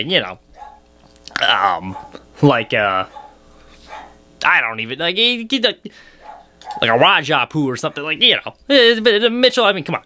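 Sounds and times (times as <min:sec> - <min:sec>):
speech: 0:00.0 - 0:00.5, 0:01.4 - 0:03.2, 0:04.4 - 0:06.1, 0:06.7 - 0:10.0
dog barking excitedly: 0:00.6 - 0:00.8, 0:01.9 - 0:02.2, 0:03.1 - 0:04.2, 0:06.2 - 0:07.0.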